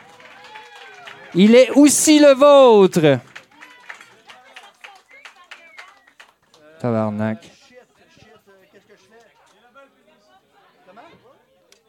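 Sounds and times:
audience applause: 0.0 - 7.4
speech: 1.3 - 3.3, 6.8 - 7.6.

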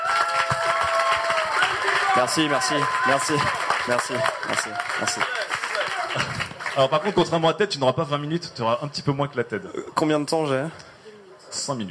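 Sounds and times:
audience applause: 0.0 - 7.2
speech: 2.2 - 10.9, 11.5 - 11.8.

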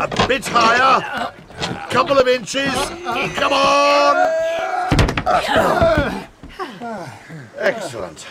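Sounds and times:
heavy bar dropped across a closed gate: 0.0 - 4.1, 4.9 - 6.6
speech: 0.0 - 4.6, 5.3 - 6.1, 7.0 - 8.2.

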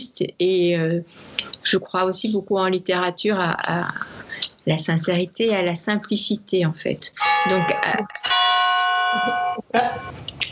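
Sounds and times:
speech: 0.2 - 8.3, 9.1 - 10.1
church bell ringing at a church in the Drôme: 7.2 - 9.6.

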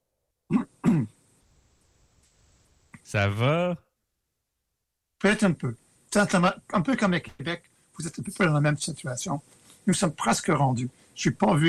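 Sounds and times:
throat clearing: 0.5 - 1.2
speech: 3.1 - 3.8, 5.2 - 11.6.

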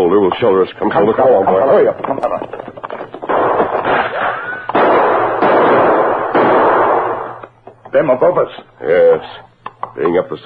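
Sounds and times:
speech: 0.3 - 2.3, 8.0 - 10.4
answering gunshots in a shootout: 3.2 - 7.5.

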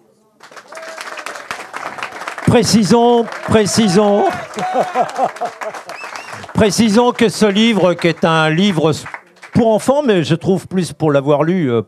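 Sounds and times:
audience applause: 0.4 - 9.9
laughter: 1.7 - 8.5
speech: 2.5 - 11.8.

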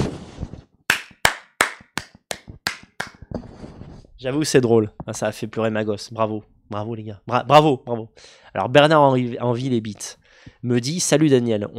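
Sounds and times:
hand claps: 0.9 - 3.2
speech: 4.2 - 11.7.

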